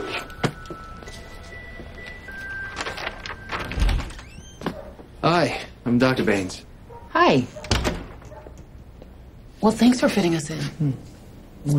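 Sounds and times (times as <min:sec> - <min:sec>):
steady hum: 0:00.0 - 0:11.7
clinic exam room door opening with thunks and clicks: 0:02.6 - 0:05.0, 0:07.6 - 0:08.7
speech: 0:05.2 - 0:07.6, 0:09.6 - 0:11.7.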